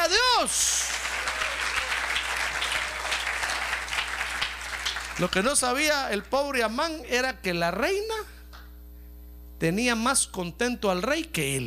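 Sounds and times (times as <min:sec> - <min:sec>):
speech: 0:00.4 - 0:00.8, 0:05.2 - 0:08.4, 0:09.6 - 0:11.6
audience applause: 0:00.6 - 0:05.6.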